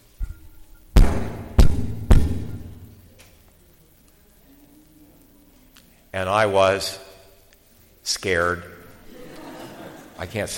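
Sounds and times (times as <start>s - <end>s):
heavy booming knocks on a door: 1.0s - 2.7s
speech: 6.1s - 7.1s, 8.1s - 8.7s, 10.2s - 10.5s
laughter: 9.0s - 10.5s.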